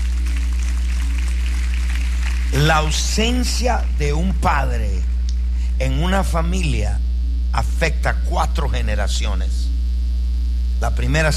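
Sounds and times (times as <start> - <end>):
crowd applauding: 0.0 - 4.0
low electrical hum: 0.0 - 11.3
speech: 2.6 - 5.1, 5.8 - 9.6, 10.8 - 11.3.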